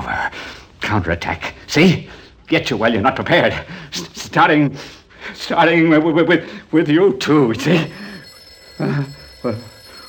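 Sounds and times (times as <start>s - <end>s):
speech: 0.3s - 8.1s, 8.8s - 9.7s
telephone ringing: 7.5s - 10.0s.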